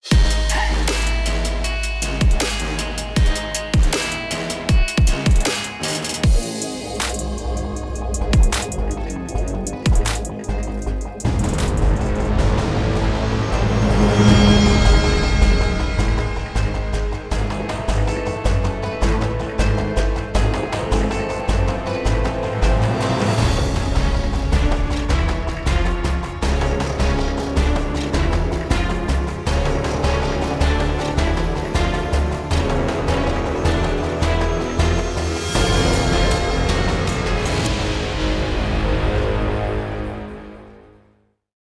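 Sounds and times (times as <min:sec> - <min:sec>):
in-game music: 0:00.0 - 0:40.9.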